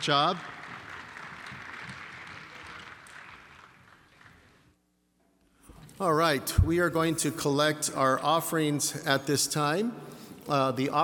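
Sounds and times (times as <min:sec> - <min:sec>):
speech: 0:00.0 - 0:00.5, 0:06.0 - 0:11.0
audience applauding the band: 0:00.0 - 0:04.8.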